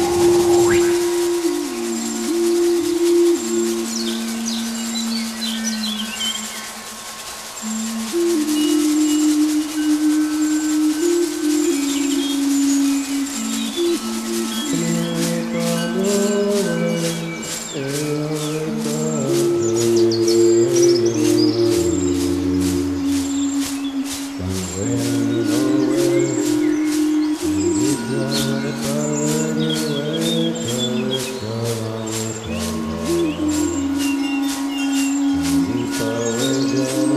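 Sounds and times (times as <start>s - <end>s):
drum: 0.0s - 2.3s
mystery bird calling: 0.0s - 37.1s
shamanic music: 0.0s - 37.1s.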